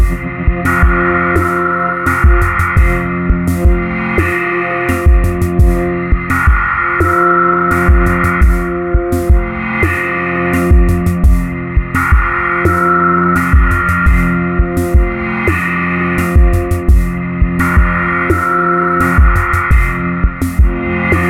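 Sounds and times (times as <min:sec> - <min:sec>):
dark beat sequence: 0:00.0 - 0:21.2.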